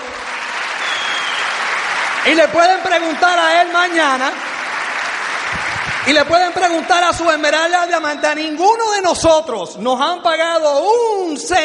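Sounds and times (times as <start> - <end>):
audience applause: 0.0 - 7.6
speech: 2.2 - 4.5, 6.1 - 11.6.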